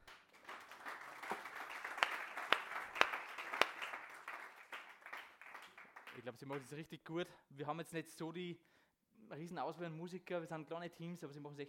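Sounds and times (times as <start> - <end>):
audience applause: 0.0 - 6.6
speech: 6.2 - 11.6.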